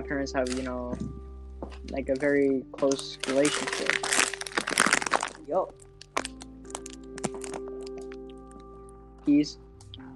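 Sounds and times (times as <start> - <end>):
speech: 0.0 - 4.3, 5.5 - 5.9, 9.2 - 9.6
hot Cheetos chips being crunched: 2.8 - 8.4.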